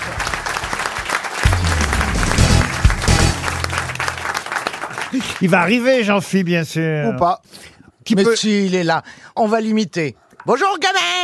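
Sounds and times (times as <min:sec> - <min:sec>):
studio audience applause: 0:00.0 - 0:05.9
speech: 0:05.1 - 0:11.2.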